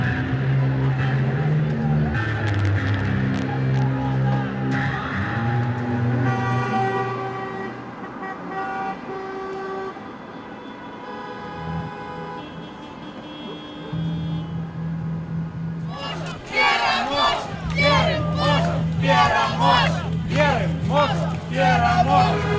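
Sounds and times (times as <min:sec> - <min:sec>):
crowd murmur at protests in Belarus: 0:00.0 - 0:06.2, 0:15.8 - 0:22.5
horns sounding at protests in Belarus: 0:00.0 - 0:15.0, 0:15.9 - 0:22.5.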